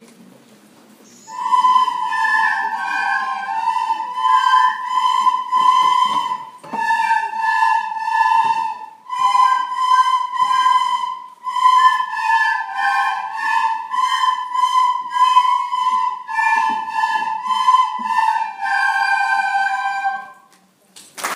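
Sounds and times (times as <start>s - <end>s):
year three recorder concert: 1.2s - 20.4s.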